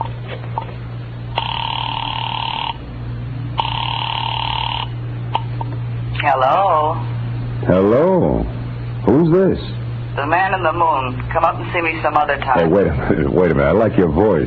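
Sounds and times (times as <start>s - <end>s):
low electrical hum: 0.0s - 14.4s
telephone ring tones on a telephone line: 1.4s - 2.8s, 3.6s - 5.0s
speech: 6.3s - 6.7s, 7.7s - 8.4s, 9.6s - 14.4s.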